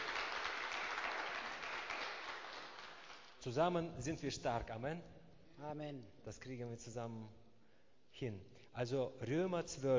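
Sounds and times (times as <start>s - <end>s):
congregation applause at a church Bible session: 0.0s - 3.4s
speech: 3.4s - 7.4s, 8.1s - 9.9s.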